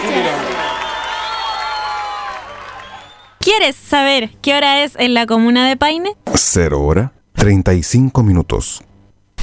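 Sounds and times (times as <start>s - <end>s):
audience applause: 0.0s - 3.4s
crowd cheering: 0.0s - 3.4s
speech: 3.6s - 9.4s.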